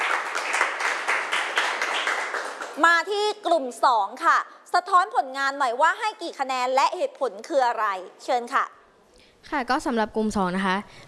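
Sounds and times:
classroom applause: 0:00.0 - 0:02.9
speech: 0:02.8 - 0:08.8, 0:09.4 - 0:11.0.

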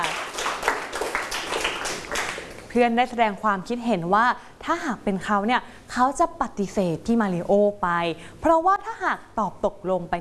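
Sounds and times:
classmates clapping in a class: 0:00.0 - 0:02.7
speech: 0:02.8 - 0:10.1.

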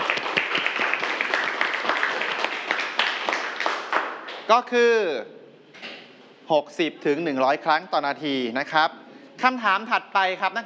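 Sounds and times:
students applauding: 0:00.0 - 0:04.5
speech: 0:04.5 - 0:05.4, 0:06.5 - 0:10.6.

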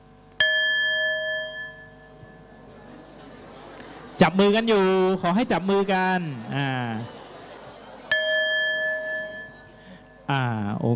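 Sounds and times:
bell rung as a signal: 0:00.4 - 0:02.8, 0:08.1 - 0:10.3
laughter: 0:02.7 - 0:10.1
speech: 0:04.2 - 0:07.2, 0:10.3 - 0:10.9.

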